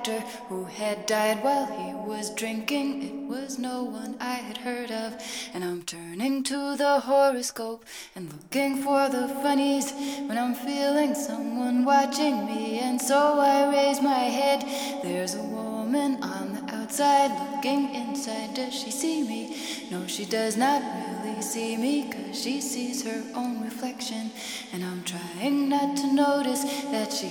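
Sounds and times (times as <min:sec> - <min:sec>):
ambient vocals: 0:00.0 - 0:27.2.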